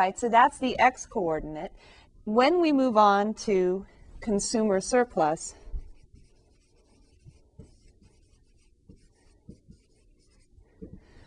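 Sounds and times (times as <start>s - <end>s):
speech: 0.0s - 5.6s
pen scratching while drawing a graph: 5.8s - 11.0s.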